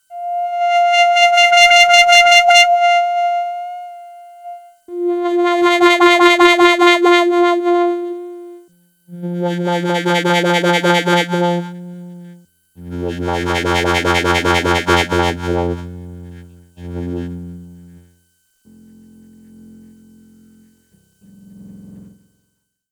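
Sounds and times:
Striso board electronic instrument tones: 0:00.0 - 0:18.1.

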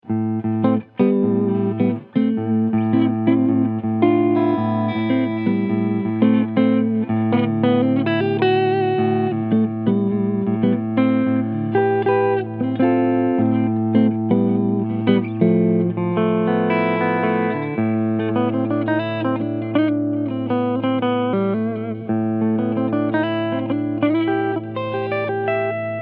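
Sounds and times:
TE 53KR BL Tribute Series guitar front pickup clean sound: 0:00.0 - 0:26.0.

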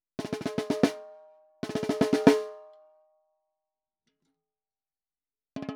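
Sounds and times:
snare drum recorded with tbone MB85 Beta microphone: 0:00.2 - 0:02.6.

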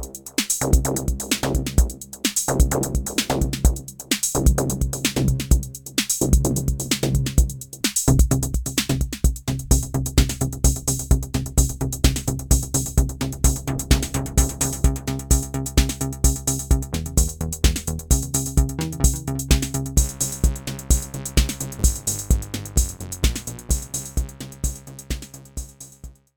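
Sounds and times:
TR-606 drum machine: 0:00.0 - 0:26.3
Micromoog analog synthesizer: 0:11.5 - 0:25.8.

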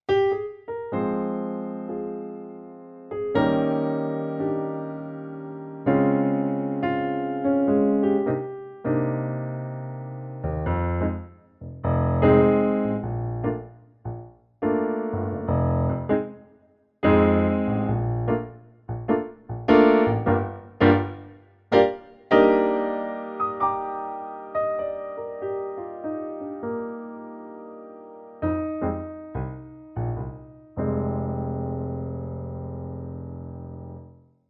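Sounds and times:
Yamaha P 515 Bösendorfer piano: 0:00.0 - 0:34.4.

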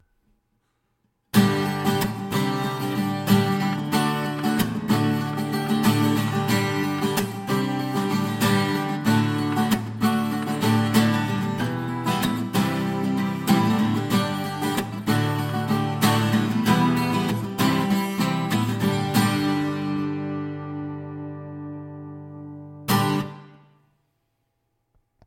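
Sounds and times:
acoustic guitar strumming: 0:01.3 - 0:23.8.

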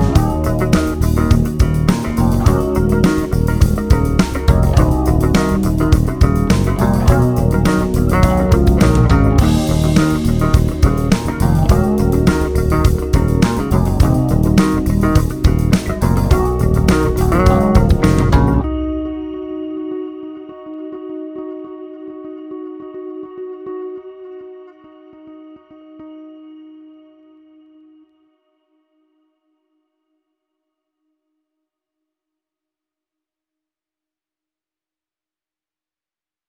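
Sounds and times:
four basses: 0:00.0 - 0:19.6.

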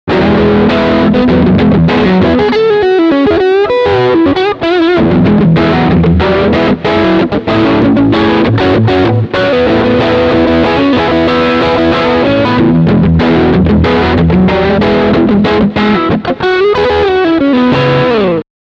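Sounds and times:
crunchy blues single-coil electric guitar: 0:00.1 - 0:18.4.

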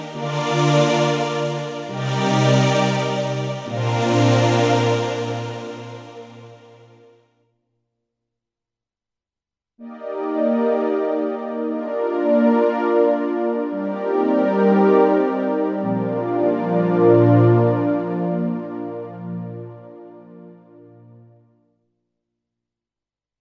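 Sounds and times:
Roland VR-730 strings: 0:00.0 - 0:06.9, 0:10.0 - 0:20.6.

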